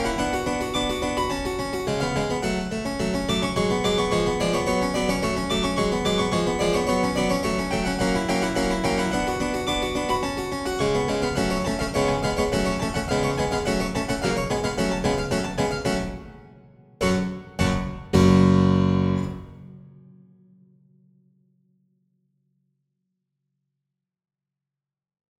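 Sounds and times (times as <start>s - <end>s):
harpsichord: 0.0s - 19.7s.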